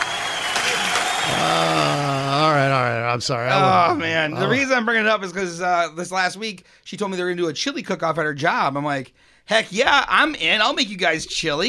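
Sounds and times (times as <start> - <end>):
audience slow clap: 0.0 - 2.5
speech: 3.2 - 11.6.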